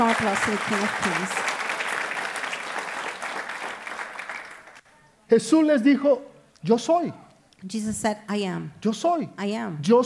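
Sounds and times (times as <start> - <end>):
speech: 0.0 - 1.6, 5.3 - 10.0
audience applause: 0.0 - 4.8.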